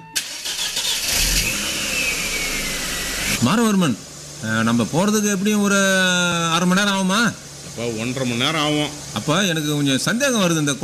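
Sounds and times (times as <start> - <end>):
car engine starting and revving as the car pulls away: 0.2 - 5.4
speech: 3.4 - 10.8.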